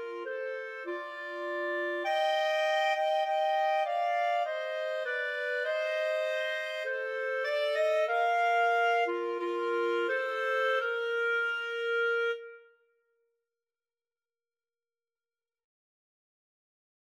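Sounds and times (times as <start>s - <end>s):
clarinet trio: 0.0s - 12.6s.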